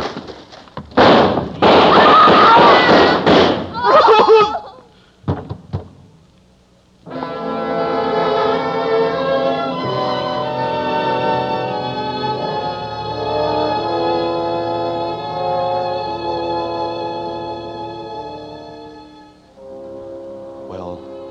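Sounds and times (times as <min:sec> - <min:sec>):
rapid gunshots from police guns: 0:01.0 - 0:03.8
laughter: 0:03.8 - 0:04.9
sustained musical chord: 0:07.1 - 0:21.3.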